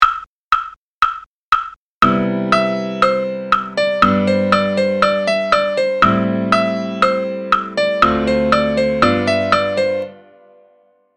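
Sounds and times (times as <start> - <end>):
seventh chord: 2.0 - 10.8.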